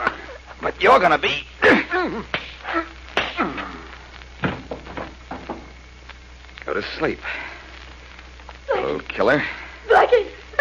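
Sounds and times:
speech: 0.8 - 2.9, 6.8 - 7.5, 8.9 - 10.6
punch to the face in a fistfight: 3.2 - 3.6
soft knocks in the fight exchange: 4.4 - 5.7.

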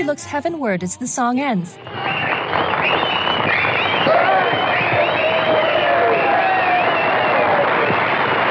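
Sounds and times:
speech: 0.1 - 4.2
children clapping and cheering after a song: 1.9 - 8.4.

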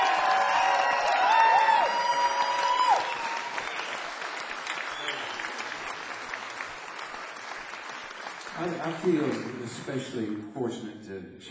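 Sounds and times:
sharp whistles and cheers: 0.0 - 6.0
crowd applauding: 0.0 - 10.2
speech: 8.8 - 11.4.

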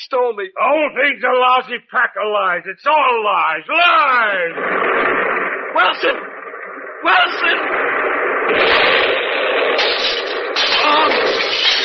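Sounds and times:
speech: 0.0 - 6.4, 7.0 - 9.1, 10.9 - 11.6
bomb explosion roar: 3.6 - 11.8.

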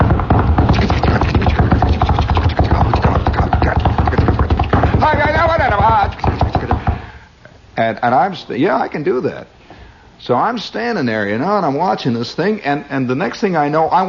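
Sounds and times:
voice imitating a drum beaten with curved sticks: 0.0 - 7.1
speech: 7.9 - 9.6, 10.2 - 14.0.

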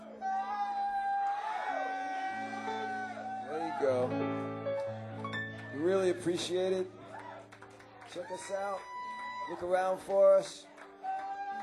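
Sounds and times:
audience applause: 1.1 - 11.6
speech: 3.8 - 4.5, 5.8 - 7.0, 8.1 - 8.9, 9.5 - 10.7.

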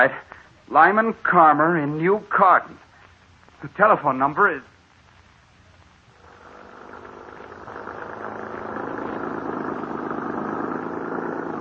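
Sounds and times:
speech: 0.0 - 2.9, 3.6 - 4.7
car engine running while driving into remote country: 6.2 - 11.6.

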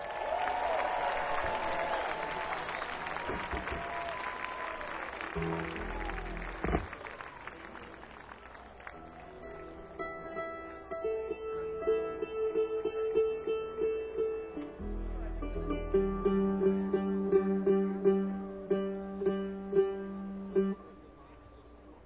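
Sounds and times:
audience applause welcoming a guitarist on stage: 0.0 - 10.2
crowd noise: 0.0 - 22.0.

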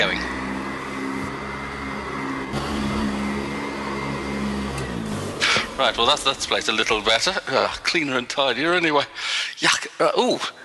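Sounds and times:
vacuum cleaner running: 0.0 - 7.4
speech: 5.8 - 10.6.

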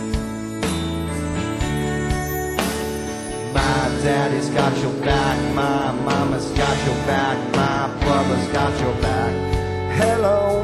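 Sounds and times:
bells ringing: 0.0 - 7.2
speech: 4.0 - 10.6.

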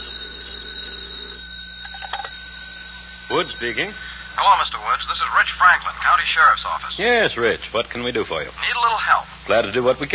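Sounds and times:
telephone ringing: 0.0 - 7.0
speech: 3.3 - 10.1.

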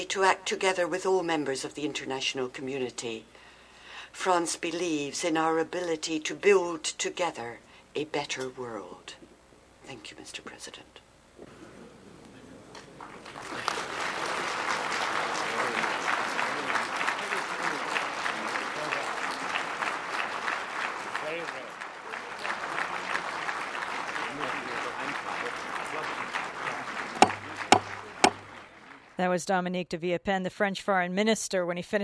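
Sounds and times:
speech: 0.0 - 3.4, 4.1 - 9.2, 9.9 - 11.5, 29.2 - 32.0
spontaneous applause in United Nations assembly gallery: 12.7 - 29.2.

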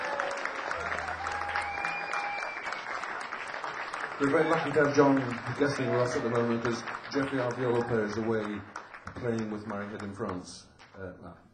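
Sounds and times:
audience applause for the musicians: 0.0 - 11.1
speech: 4.2 - 11.5.

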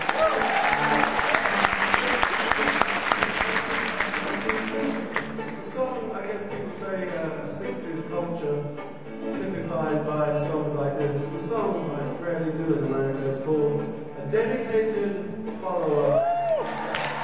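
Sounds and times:
audience applause for a performer: 0.0 - 5.8, 16.3 - 17.2
band playing: 0.0 - 16.0.

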